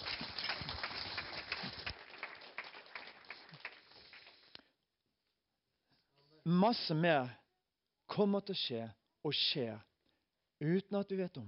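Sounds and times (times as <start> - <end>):
audience applause: 0.0 - 4.5
speech: 6.5 - 7.4, 8.2 - 9.9, 10.6 - 11.4.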